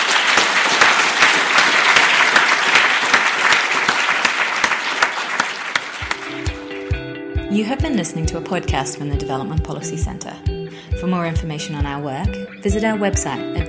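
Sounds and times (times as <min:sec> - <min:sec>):
room full of people clapping: 0:00.0 - 0:07.0
speech: 0:07.6 - 0:13.6.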